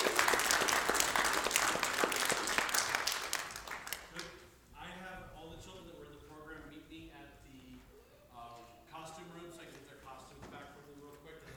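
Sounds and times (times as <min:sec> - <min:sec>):
audience applause: 0:00.0 - 0:04.3.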